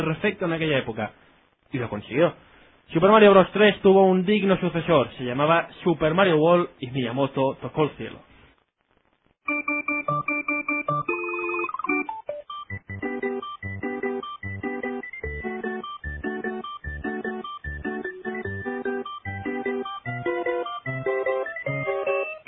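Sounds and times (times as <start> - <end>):
speech: 0.0 - 8.3
incoming-call telephone ringtone: 9.5 - 22.4.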